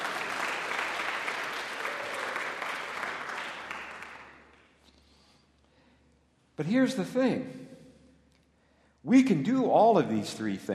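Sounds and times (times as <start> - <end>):
audience applause: 0.0 - 4.6
speech: 6.6 - 7.6, 9.0 - 10.7.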